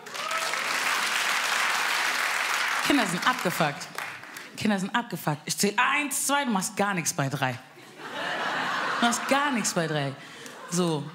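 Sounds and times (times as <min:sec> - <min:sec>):
audience applause: 0:00.0 - 0:04.4
speech: 0:02.9 - 0:04.0, 0:04.6 - 0:07.7, 0:09.0 - 0:11.1
laughter: 0:07.8 - 0:11.1.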